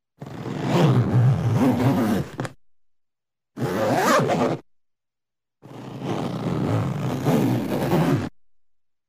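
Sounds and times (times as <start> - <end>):
zipper on clothing being fastened: 0.2 - 2.6, 3.6 - 4.6, 5.6 - 8.4.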